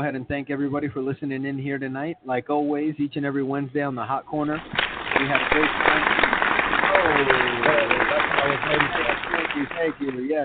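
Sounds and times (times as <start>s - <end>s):
speech: 0.0s - 6.4s, 7.2s - 10.4s
crowd applause: 4.6s - 10.4s.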